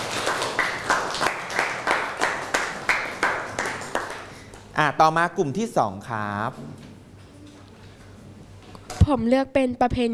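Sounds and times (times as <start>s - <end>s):
classroom applause for a presenter: 0.0s - 4.5s
speech: 4.8s - 6.8s, 9.1s - 10.1s.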